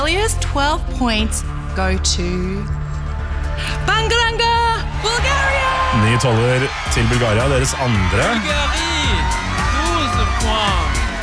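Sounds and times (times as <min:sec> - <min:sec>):
speech: 0:00.3 - 0:02.8, 0:03.6 - 0:09.4
constant crowd roar: 0:05.0 - 0:11.2
delegation cheering in green room: 0:05.0 - 0:11.2.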